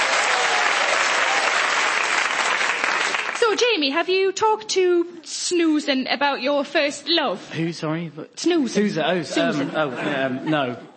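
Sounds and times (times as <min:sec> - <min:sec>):
round of applause: 0:00.0 - 0:03.5
speech: 0:03.5 - 0:10.9
laughter: 0:09.1 - 0:10.9.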